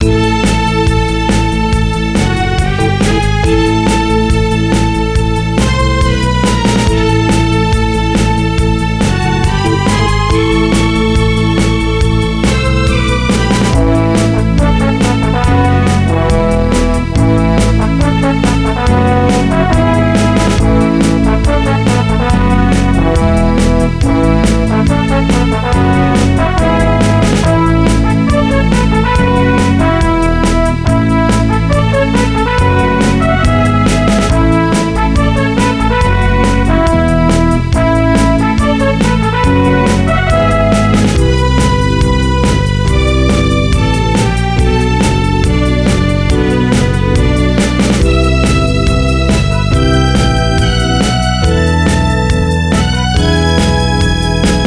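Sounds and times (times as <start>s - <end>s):
ending music: 0.0s - 54.6s.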